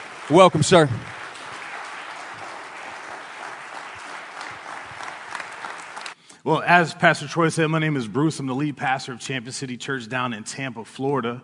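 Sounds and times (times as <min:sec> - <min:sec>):
church congregation applause welcoming a guest pastor: 0:00.0 - 0:06.2
speech: 0:00.3 - 0:01.2, 0:06.4 - 0:11.4.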